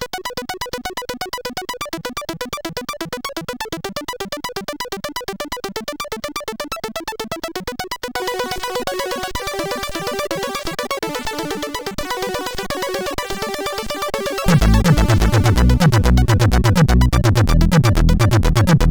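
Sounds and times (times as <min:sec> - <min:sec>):
SID CSG8580R5 chip music: 0:07.2 - 0:18.9.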